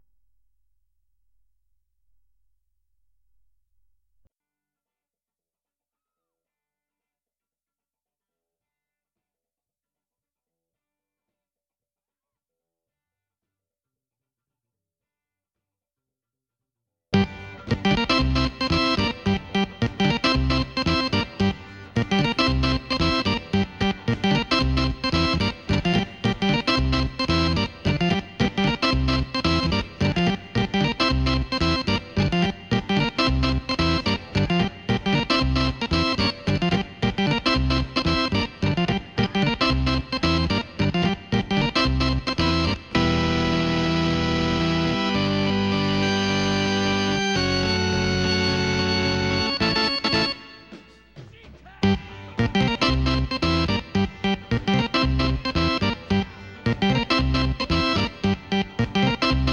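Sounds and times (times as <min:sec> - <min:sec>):
keyboard playing: 0:17.2 - 0:59.5.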